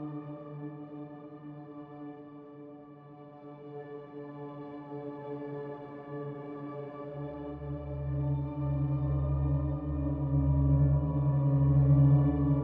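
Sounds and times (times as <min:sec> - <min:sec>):
tower climbing ambient music: 0:07.3 - 0:12.6.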